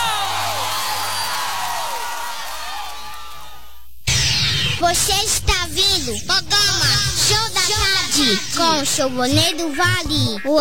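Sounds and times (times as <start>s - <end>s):
audience applause: 0.0s - 3.6s
speech: 4.8s - 10.5s.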